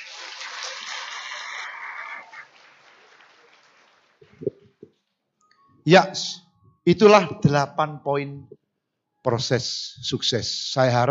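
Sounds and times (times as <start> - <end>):
applause: 0.0 - 4.8
speech: 5.8 - 8.6, 9.2 - 11.1.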